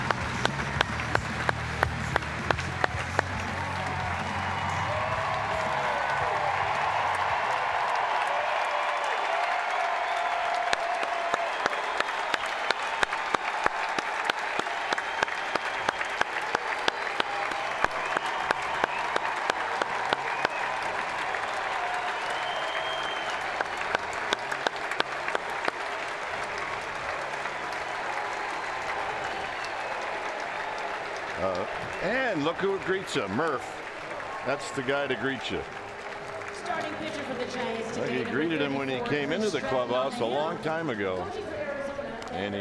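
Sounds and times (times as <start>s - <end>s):
stadium crowd applause and cheers at AT&T: 0.0s - 42.5s
speech: 32.4s - 33.8s, 34.4s - 35.8s, 37.5s - 41.5s, 42.3s - 42.5s.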